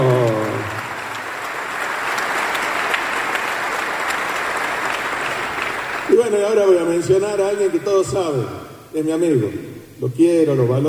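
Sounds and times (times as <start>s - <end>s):
audience applause: 0.0s - 7.7s
speech: 6.5s - 10.8s.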